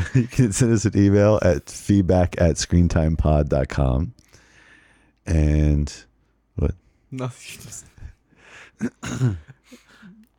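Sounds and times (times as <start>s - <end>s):
speech: 0.2s - 4.2s, 5.3s - 7.9s, 8.8s - 9.8s
throat clearing: 8.8s - 10.2s.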